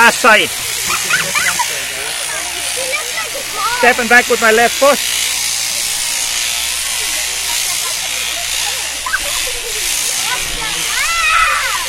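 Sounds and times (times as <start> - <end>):
electric sheep shearing handpiece running: 0.0 - 11.8
speech: 0.1 - 1.0, 3.8 - 5.2
laughter: 0.5 - 3.8, 5.6 - 11.8.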